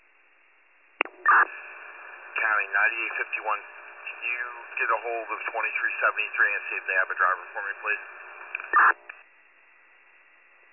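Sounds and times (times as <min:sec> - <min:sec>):
radio static: 0:01.0 - 0:09.2
speech: 0:02.6 - 0:08.2, 0:08.8 - 0:09.1.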